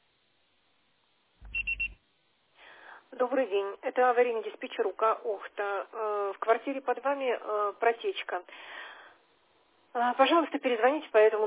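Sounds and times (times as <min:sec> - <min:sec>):
voicemail beep tone: 0:01.4 - 0:02.0
speech: 0:03.1 - 0:08.8, 0:10.0 - 0:11.4.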